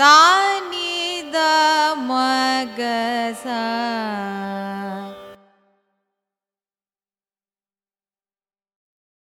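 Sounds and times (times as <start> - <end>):
Carnatic raga arohanam and avarohanam scale: 0.0 - 5.9.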